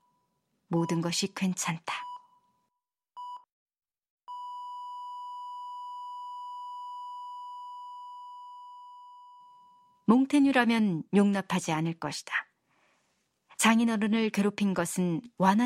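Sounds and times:
speech: 0.7s - 2.1s, 10.1s - 12.5s, 13.6s - 15.6s
medical machine monitor beeping: 4.3s - 9.9s.

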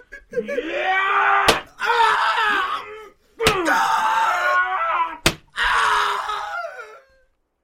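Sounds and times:
speech: 0.3s - 1.3s
man screaming in pain: 0.3s - 7.2s
sharp paddle-like blows beating a prisoner: 1.4s - 1.7s.

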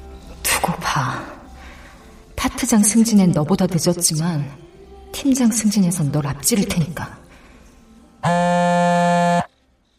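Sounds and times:
speech: 2.7s - 7.3s
mobile phone vibrating: 8.2s - 9.5s.

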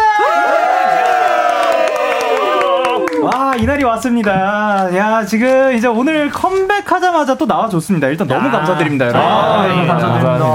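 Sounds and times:
audience cheering and screaming: 0.0s - 3.3s
speech: 3.2s - 10.5s.

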